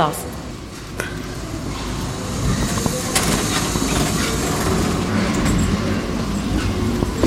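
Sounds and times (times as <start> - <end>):
big revolving door turning with a low rumbling whir: 0.4 - 7.2
revolving door mechanism clicks and knocks: 3.1 - 6.0.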